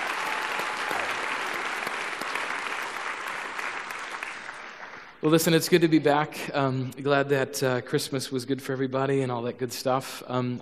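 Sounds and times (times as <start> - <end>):
audience applause: 0.0 - 5.6
speech: 5.2 - 10.6.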